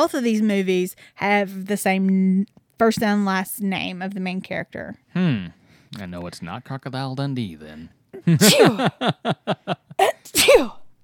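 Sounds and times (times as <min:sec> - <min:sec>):
speech: 0:00.0 - 0:10.8
person sneezing: 0:08.2 - 0:08.9, 0:10.0 - 0:10.9
laughter: 0:08.2 - 0:10.1.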